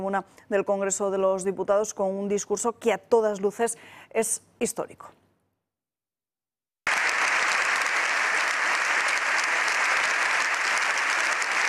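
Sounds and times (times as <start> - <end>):
speech: 0.0 - 5.2
long applause in parliament: 6.9 - 11.6.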